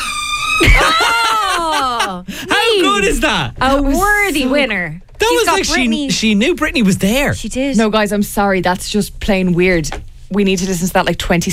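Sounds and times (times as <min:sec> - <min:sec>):
door creaking: 0:00.0 - 0:01.0, 0:03.3 - 0:07.4
laughter: 0:00.6 - 0:03.0
speech: 0:01.8 - 0:11.5.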